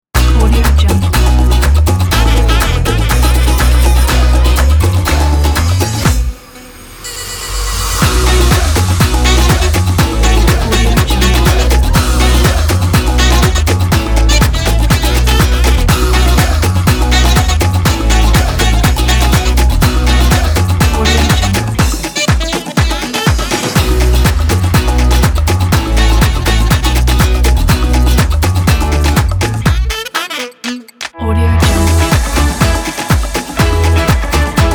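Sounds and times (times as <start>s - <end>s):
fun brassy corporate music: 0.2s - 6.4s, 8.0s - 34.7s.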